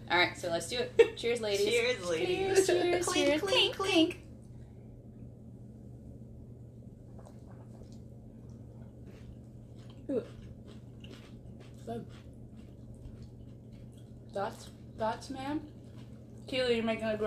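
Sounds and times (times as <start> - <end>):
low hum: 0.0 - 17.2
speech: 0.1 - 4.2, 14.4 - 15.7, 16.5 - 17.2
biting and chewing pickles: 9.0 - 14.3.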